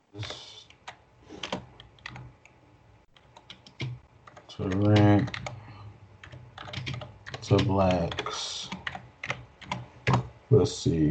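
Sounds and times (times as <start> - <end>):
typing on a computer keyboard: 0.2 - 2.3, 3.1 - 5.6, 6.2 - 10.3
speech: 4.6 - 5.4, 7.5 - 8.7, 10.6 - 11.1.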